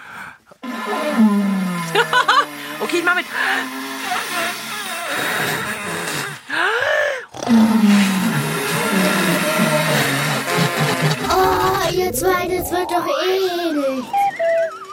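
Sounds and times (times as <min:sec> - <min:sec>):
dinosaur snoring imitated by groaning into a watering can: 0:00.6 - 0:06.5, 0:07.4 - 0:12.9
speech: 0:02.9 - 0:03.9, 0:12.1 - 0:14.3.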